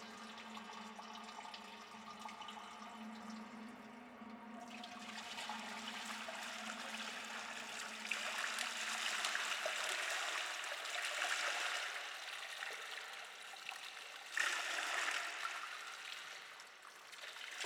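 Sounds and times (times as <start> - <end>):
thermal baths ambience: 0.0 - 17.6.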